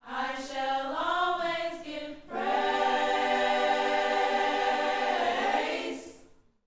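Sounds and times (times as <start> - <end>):
gospel vocal phrase: 0.0 - 6.3.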